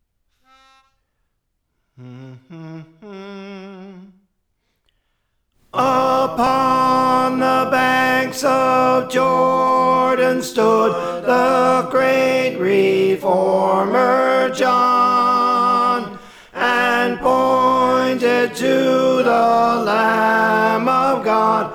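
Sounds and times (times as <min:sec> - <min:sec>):
tenor singing: 0:05.7 - 0:21.7.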